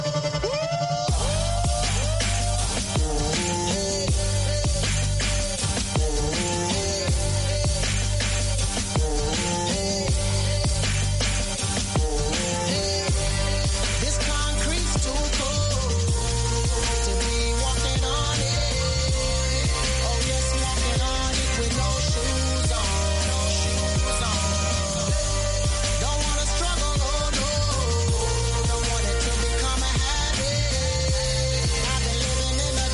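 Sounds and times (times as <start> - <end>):
song with melodic lead vocal over deep bass and steady beat: 0.0 - 32.9.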